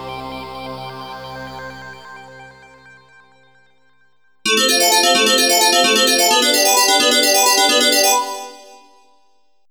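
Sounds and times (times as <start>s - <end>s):
Synclavier synthesizer sequence: 4.5s - 8.9s.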